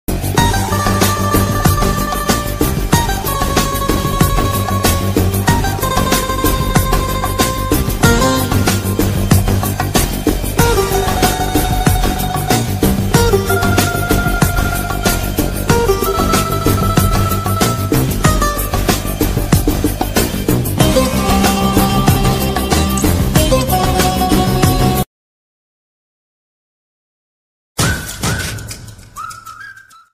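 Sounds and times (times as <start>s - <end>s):
instrumental music: 0.1s - 25.0s.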